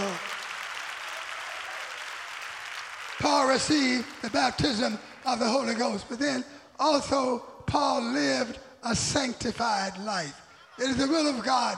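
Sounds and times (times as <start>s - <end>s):
audience clapping hands: 0.0s - 6.1s
speech: 3.2s - 11.7s.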